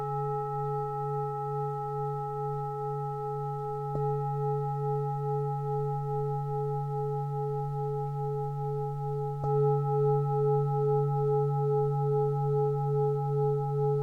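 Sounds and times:
Tibetan bowls humming: 0:00.0 - 0:14.0.

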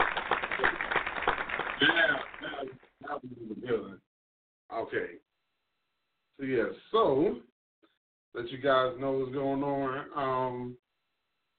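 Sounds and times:
hand claps: 0:00.0 - 0:02.8
speech: 0:03.2 - 0:04.0, 0:04.7 - 0:05.2, 0:06.4 - 0:07.5, 0:08.4 - 0:10.8.

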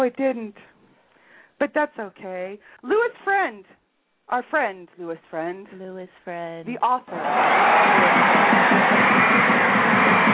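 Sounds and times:
speech: 0:00.0 - 0:00.8, 0:01.6 - 0:09.2
crowd sound effect: 0:07.1 - 0:10.3.

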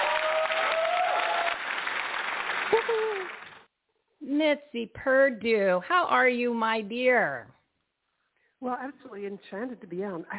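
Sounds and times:
whoops and tonal cries: 0:00.0 - 0:01.6, 0:02.7 - 0:03.5
sizable crowd clapping: 0:00.0 - 0:03.7
speech: 0:02.7 - 0:03.4, 0:04.2 - 0:07.6, 0:08.6 - 0:10.3.

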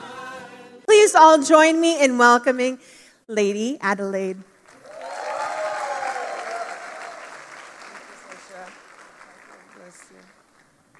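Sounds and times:
speech: 0:01.1 - 0:04.5
audience applause and clapping: 0:04.7 - 0:10.9.

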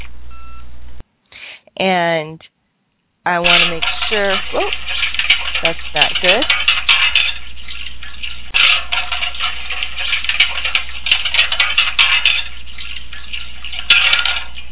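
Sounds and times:
speech: 0:01.8 - 0:02.6, 0:03.2 - 0:04.9, 0:05.6 - 0:06.6
dishes clattering: 0:03.4 - 0:14.6.

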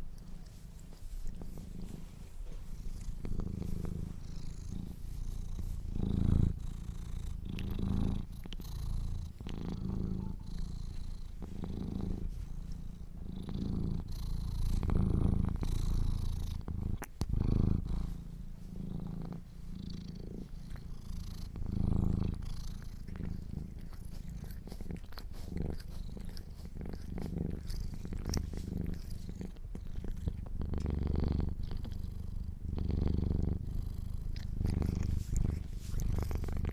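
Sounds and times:
domestic cat purring: 0:00.0 - 0:36.7.

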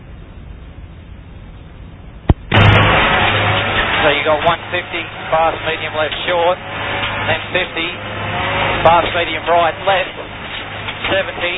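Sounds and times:
rally car engine roaring inside the car: 0:00.0 - 0:11.5
sharp pop: 0:02.3 - 0:04.0
speech: 0:04.0 - 0:10.2, 0:11.0 - 0:11.5.

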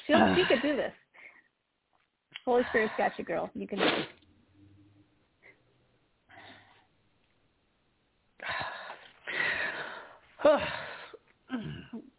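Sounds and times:
speech: 0:00.2 - 0:01.1, 0:02.5 - 0:04.2
woman crying and gasping while trying to read aloud: 0:08.5 - 0:11.8.

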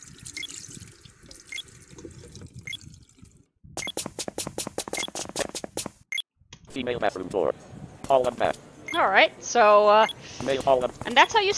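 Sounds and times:
water running from a tap into a bathroom wash basin: 0:00.0 - 0:03.5
speech: 0:06.8 - 0:11.5.

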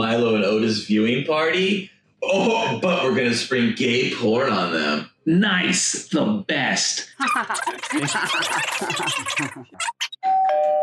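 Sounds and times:
speech: 0:00.0 - 0:10.4
people laughing and chattering: 0:07.2 - 0:10.1
two-note ding-dong doorbell chime: 0:10.3 - 0:10.8.

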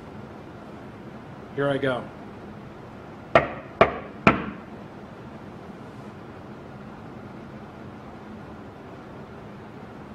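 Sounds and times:
speech: 0:01.6 - 0:02.2
knocking on a wall: 0:03.4 - 0:04.6.

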